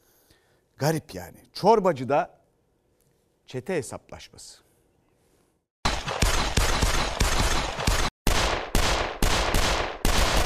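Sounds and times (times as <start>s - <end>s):
speech: 0.8s - 2.4s, 3.5s - 4.6s
gunfire: 5.8s - 10.4s.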